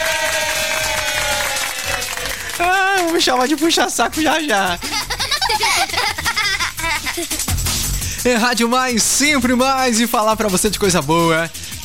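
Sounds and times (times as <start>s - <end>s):
applause: 0.0s - 4.4s
laughter: 0.0s - 7.6s
speech: 2.6s - 6.1s, 7.2s - 7.5s, 8.2s - 11.8s.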